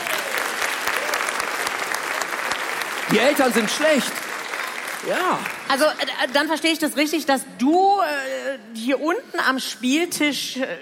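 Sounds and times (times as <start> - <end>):
applause: 0.0 - 6.5
speech: 3.1 - 4.2, 5.0 - 10.8.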